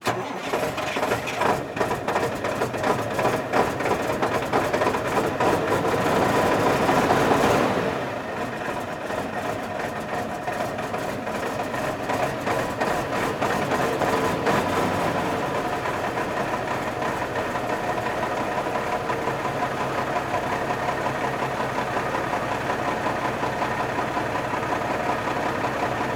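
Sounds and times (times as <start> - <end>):
semi truck: 0.0 - 26.1.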